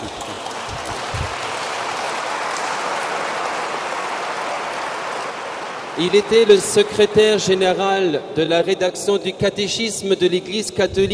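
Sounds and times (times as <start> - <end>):
audience applauding: 0.0 - 7.6
speech: 6.0 - 11.1.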